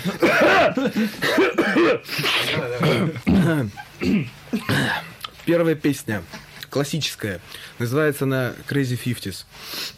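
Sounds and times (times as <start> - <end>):
throat clearing: 0.0 - 5.2
coughing: 0.0 - 5.3
speech: 0.0 - 9.9.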